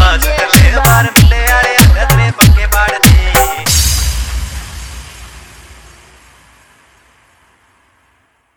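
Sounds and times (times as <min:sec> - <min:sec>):
hard remix Haryanvi DJ song: 0:00.0 - 0:06.0.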